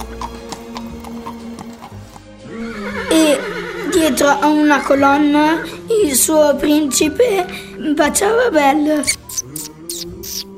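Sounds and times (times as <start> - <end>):
horse hooves of Cinderella's horse-drawn carriage driving away through Viareggio: 0.0 - 2.3
speech: 4.0 - 9.2.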